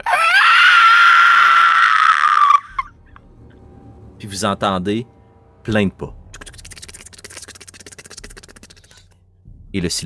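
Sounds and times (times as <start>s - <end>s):
violent scream: 0.0s - 2.9s
speech: 4.3s - 6.2s, 9.7s - 10.0s.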